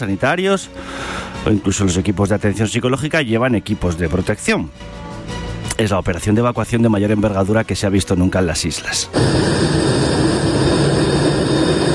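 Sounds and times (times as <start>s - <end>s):
speech: 0.0s - 5.0s, 5.8s - 10.0s
Spanish Air Force Airbus A310 engine roar arriving at Torrejón military base: 9.1s - 11.9s.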